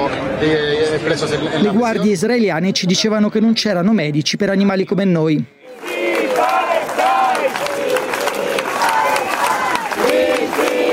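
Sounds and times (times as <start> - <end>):
speech: 0.4 - 5.6
large crowd chanting: 5.6 - 10.9.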